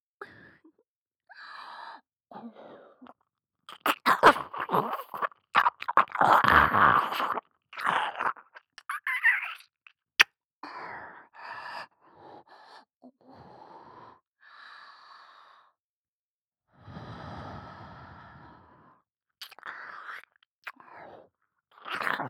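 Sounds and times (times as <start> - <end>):
soft ear licking in left ear: 3.7 - 9.6, 19.4 - 20.8, 21.8 - 22.2.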